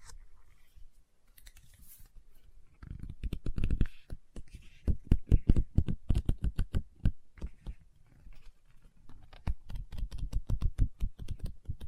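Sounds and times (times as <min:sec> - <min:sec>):
fingers tapping and scratching on a book: 0:02.8 - 0:07.8, 0:09.1 - 0:11.8.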